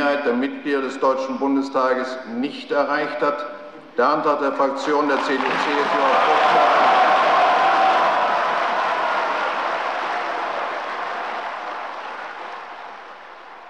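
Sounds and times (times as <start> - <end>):
speech: 0.0 - 6.9
coalition benches cheering in the German Bundestag: 4.8 - 13.6.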